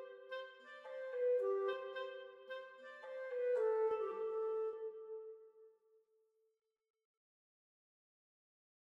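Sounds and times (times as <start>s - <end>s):
B-flat clarinet playing: 0.0s - 5.6s.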